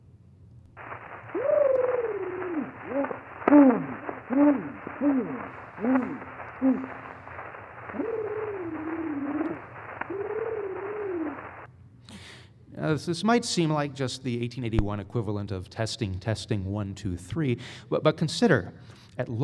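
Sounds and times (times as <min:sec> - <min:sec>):
1881 recorded reference trill: 0:00.8 - 0:11.7
speech: 0:03.5 - 0:07.0, 0:12.9 - 0:19.4.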